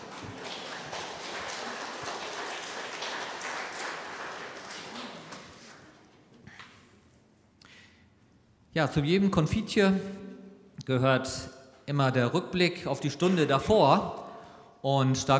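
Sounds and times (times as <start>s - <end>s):
crowd clapping: 0.0s - 6.0s
speech: 8.8s - 10.2s, 10.9s - 14.2s, 14.8s - 15.3s.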